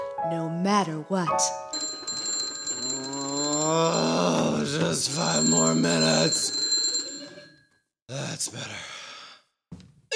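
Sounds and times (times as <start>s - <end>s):
speech: 0.2s - 1.8s, 3.7s - 6.6s, 8.1s - 9.0s
Omega Sanction alarm clock ringing with an electronic tone: 1.7s - 7.7s.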